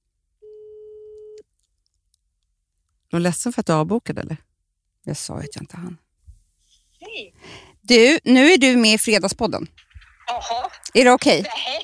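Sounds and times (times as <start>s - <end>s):
telephone tone as a call goes to voicemail: 0.4s - 1.4s
speech: 3.1s - 6.0s, 7.1s - 11.8s.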